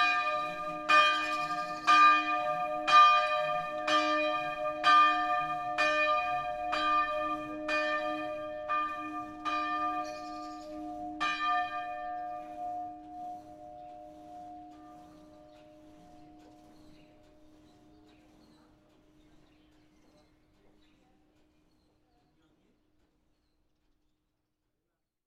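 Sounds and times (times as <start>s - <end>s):
church bells in Nernier Haute-Savoie France: 0.0s - 18.0s.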